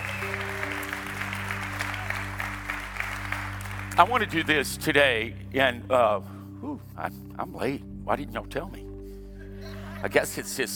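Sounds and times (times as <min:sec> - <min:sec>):
audience clapping and shouting: 0:00.0 - 0:04.8
sustained low instrumental tones: 0:00.0 - 0:10.7
speech: 0:04.0 - 0:08.8, 0:10.0 - 0:10.7
laughter: 0:09.4 - 0:10.4.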